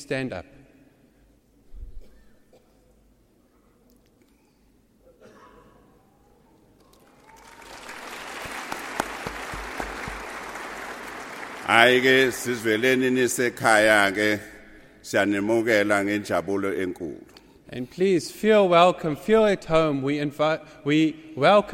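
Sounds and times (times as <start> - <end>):
speech: 0.0 - 0.6, 11.7 - 14.5, 15.1 - 21.7
applause: 6.8 - 12.8.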